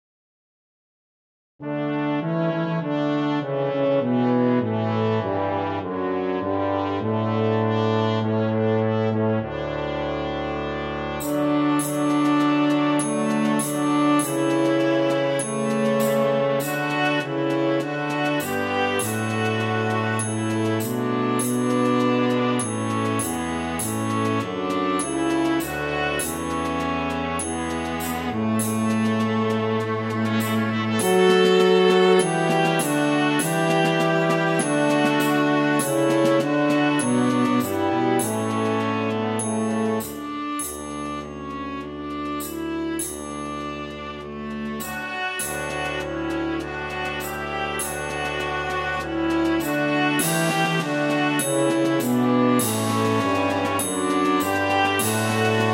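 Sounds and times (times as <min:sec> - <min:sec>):
viola melody: 0:01.6 - 0:55.7.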